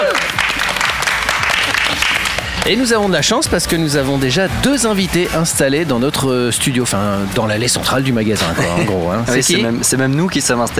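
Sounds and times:
audience applause: 0.0 - 3.1
laughter: 0.0 - 3.2, 8.4 - 9.6
speech: 2.6 - 10.7.

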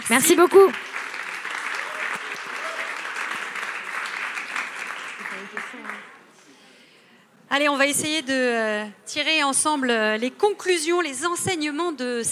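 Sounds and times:
audience applause: 0.0 - 6.3
speech: 0.1 - 0.9, 5.7 - 6.2, 7.5 - 12.3.

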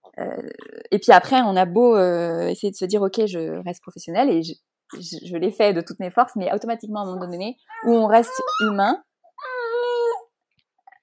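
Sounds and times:
speech: 0.2 - 9.1
baby whimpering: 7.1 - 10.3
baby crying: 7.7 - 10.3.

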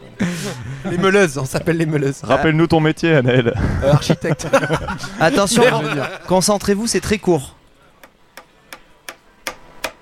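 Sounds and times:
laughter: 0.0 - 2.5, 3.2 - 6.5
speech: 0.2 - 7.6
hammer hitting a nail: 8.0 - 9.9.

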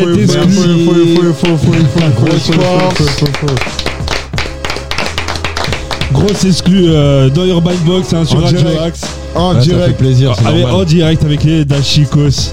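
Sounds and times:
speech: 0.0 - 3.8, 6.2 - 12.5
studio audience clapping and cheering: 0.0 - 7.8
music with a singing voice: 0.0 - 12.5.

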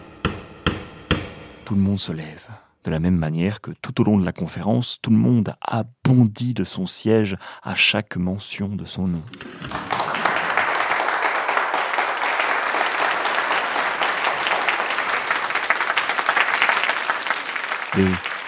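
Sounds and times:
speech: 1.7 - 9.9, 18.0 - 18.3
frenzied applause turning into ovation in a hall: 9.5 - 18.4.

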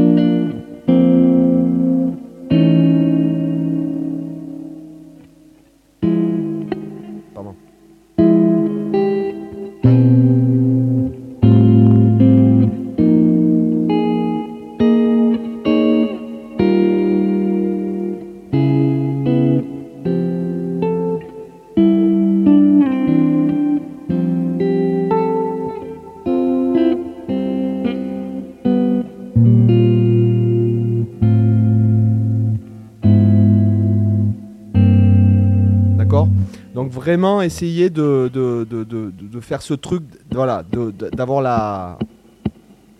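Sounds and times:
electric guitar strummed with the fingers: 0.0 - 42.9
speech: 37.2 - 42.1.

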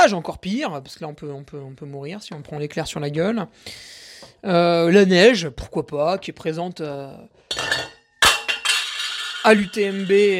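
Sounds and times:
speech: 0.0 - 7.8, 9.4 - 10.3
metal utensils clinking against dishes while cooking cheese chips: 7.5 - 10.3.

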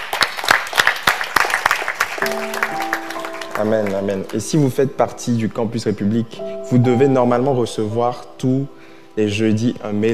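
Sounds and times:
audience applauding: 0.0 - 4.8
speech: 2.2 - 2.6, 3.6 - 10.1.

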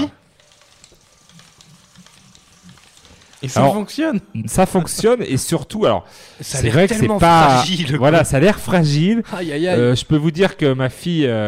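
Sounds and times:
small cardboard toy fishing reel being cranked: 0.0 - 3.9
speech: 3.4 - 11.4.

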